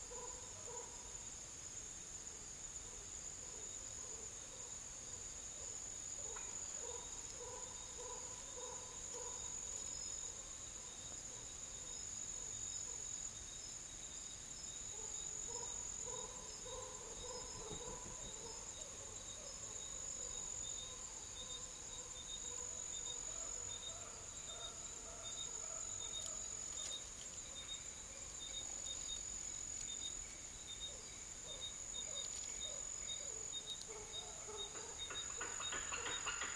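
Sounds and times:
high insect trill in dry forest in Madagascar: 0.0 - 36.5.

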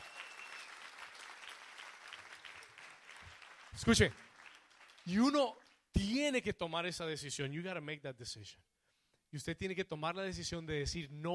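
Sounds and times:
audience applause: 0.0 - 5.4
speech: 3.8 - 4.2, 5.0 - 8.7, 9.3 - 11.3.

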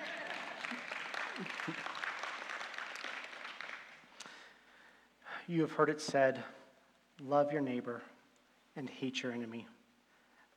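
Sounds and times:
audience applause: 0.0 - 4.0
speech: 1.4 - 1.9, 5.5 - 6.6, 7.2 - 8.2, 8.8 - 9.8.

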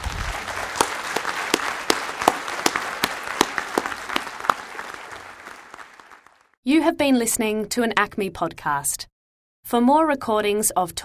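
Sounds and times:
audience applause: 0.0 - 6.6
crisp louder clap: 0.0 - 6.6
speech: 6.6 - 9.1, 9.7 - 11.0.

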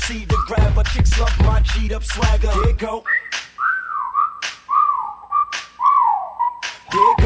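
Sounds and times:
person whistling at a girl: 0.1 - 0.9, 2.4 - 7.2
speech: 1.0 - 3.2.

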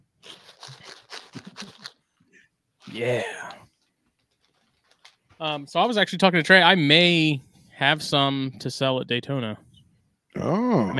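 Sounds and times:
bag of coffee beans being jiggled: 0.2 - 2.0, 2.8 - 5.4
speech: 3.0 - 3.4, 5.4 - 9.6, 10.3 - 10.9.

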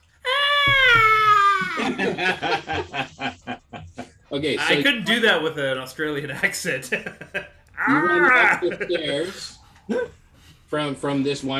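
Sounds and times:
person's voice imitating a high-pitched scream: 0.2 - 1.9, 7.8 - 8.8
person giggling: 1.5 - 4.1, 6.9 - 10.2
speech: 1.9 - 2.8, 4.4 - 10.1, 10.7 - 11.5.

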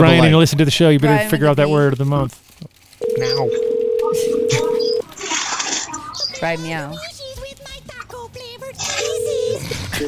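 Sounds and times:
speech: 0.0 - 4.6, 6.4 - 7.1
phone line tone: 3.0 - 5.0, 9.0 - 10.0.

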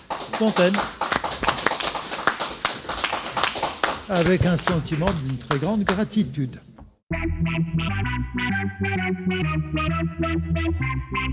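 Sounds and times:
audience applause: 0.0 - 6.0
speech: 0.4 - 1.0, 4.1 - 6.7, 7.4 - 11.3.

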